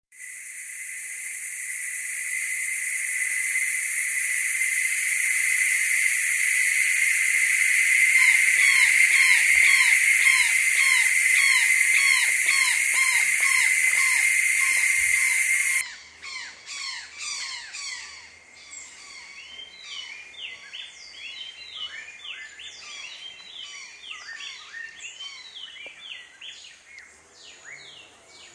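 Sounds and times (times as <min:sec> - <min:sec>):
jungle sounds: 0:00.1 - 0:18.3.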